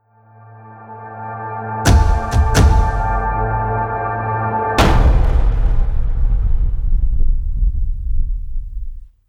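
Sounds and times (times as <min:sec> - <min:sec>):
movie trailer drum impact: 0:01.9 - 0:03.8, 0:04.8 - 0:08.4.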